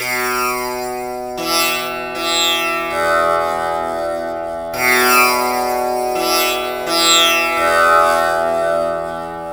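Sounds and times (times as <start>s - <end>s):
tampura: 0.0s - 9.5s.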